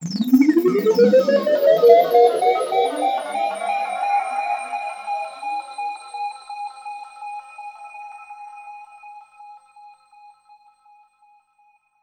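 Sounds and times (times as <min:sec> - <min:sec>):
lasers: 0:00.0 - 0:04.8.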